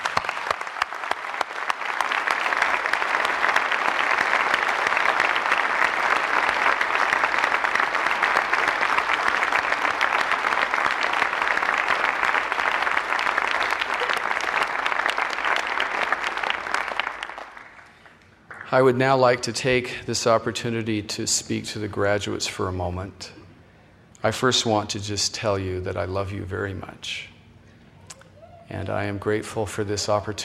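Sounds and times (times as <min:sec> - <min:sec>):
audience applause: 0:00.0 - 0:18.7
speech: 0:18.7 - 0:23.4, 0:24.2 - 0:27.3, 0:28.8 - 0:30.4.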